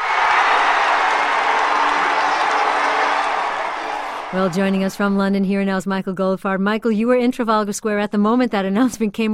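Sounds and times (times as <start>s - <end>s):
people shouting: 0.0s - 5.0s
clapping: 0.0s - 5.2s
crowd cheering in a city square: 0.0s - 5.3s
speech: 4.3s - 9.3s.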